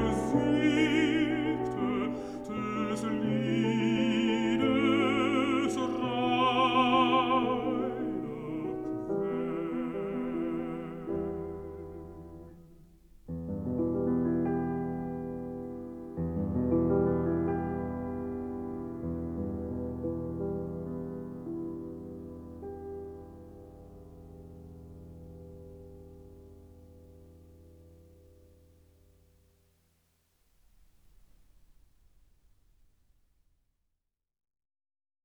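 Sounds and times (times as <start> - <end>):
person singing: 0.0 - 12.6
piano: 0.0 - 33.2.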